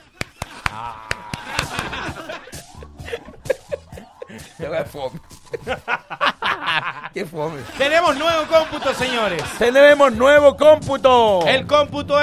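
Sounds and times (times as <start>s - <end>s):
clapping imitating horse hooves walking: 0.0s - 2.8s
chuckling laughter: 0.0s - 9.6s
speech: 0.8s - 1.1s, 4.6s - 12.2s.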